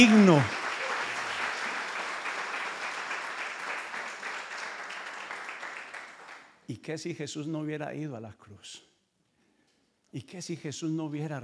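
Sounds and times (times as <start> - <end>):
speech: 0.0 - 0.6, 6.7 - 8.9, 10.1 - 11.4
audience applause: 0.0 - 6.4.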